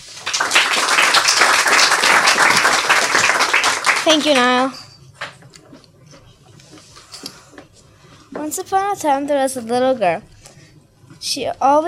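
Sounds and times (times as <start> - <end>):
audience applauding to welcome an author: 0.0 - 4.6
speech: 4.0 - 4.8, 8.4 - 10.3, 11.4 - 11.8.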